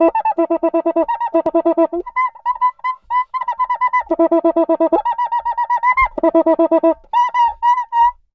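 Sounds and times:
cuica samba music: 0.0 - 2.4, 3.5 - 8.1.

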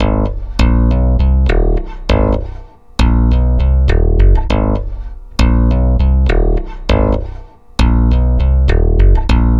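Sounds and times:
stick bass loop: 0.0 - 9.5.

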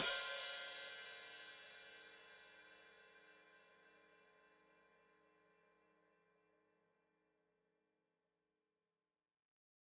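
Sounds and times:
open hi-hat played with foot: 0.0 - 1.5.

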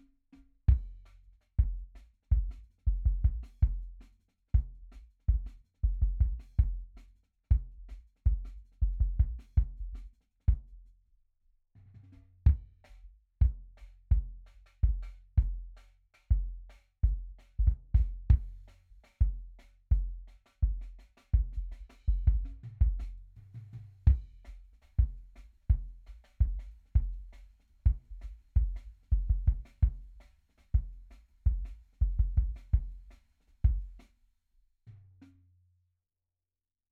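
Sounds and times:
drum and bass sub kick drum: 1.6 - 3.9, 4.6 - 10.6, 12.5 - 15.7, 16.3 - 20.8, 21.4 - 23.2, 24.1 - 30.2, 30.8 - 33.0, 33.6 - 34.0.

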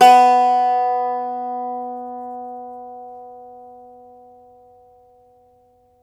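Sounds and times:
Irish old world instruments playing: 0.0 - 2.5.

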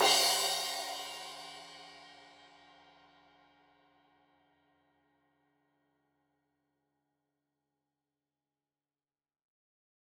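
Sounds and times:
15 inch crash cymbal edge hit: 0.0 - 2.1.

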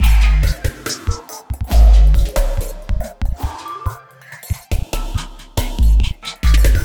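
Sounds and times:
808 drum machine loop: 0.0 - 6.8.

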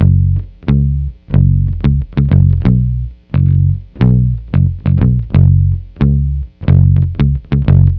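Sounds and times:
lounge bass in F sharp: 0.0 - 7.9.

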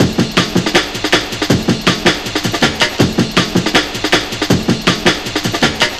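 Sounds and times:
drum loop: 0.0 - 5.9.

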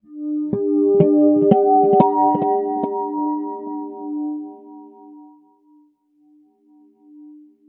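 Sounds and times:
guitar effects: 0.0 - 5.5.

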